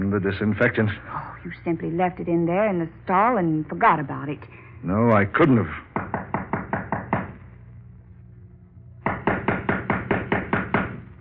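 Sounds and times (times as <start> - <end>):
speech: 0.1 - 5.8
knock on a door: 6.0 - 7.4, 9.0 - 11.0.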